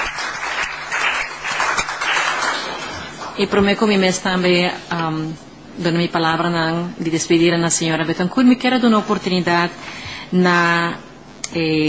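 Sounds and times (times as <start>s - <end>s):
crowd applauding: 0.0s - 3.4s
speech: 3.4s - 11.8s.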